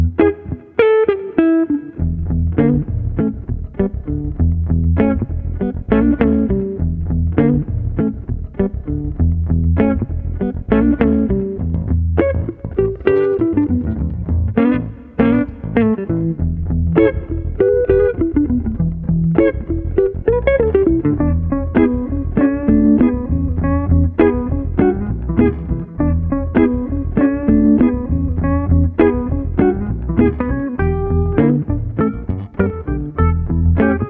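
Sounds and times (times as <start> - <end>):
laidback bass guitar groove: 0.0 - 0.8, 1.9 - 34.0.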